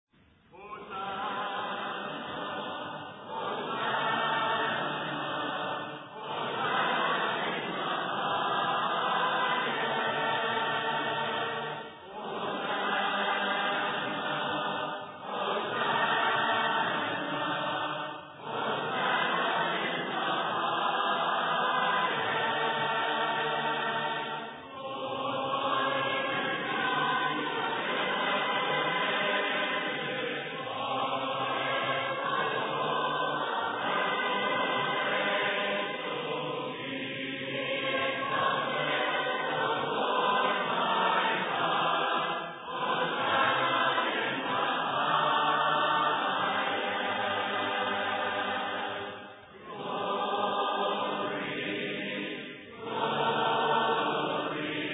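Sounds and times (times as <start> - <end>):
a cappella hymn: 0.0 - 54.9.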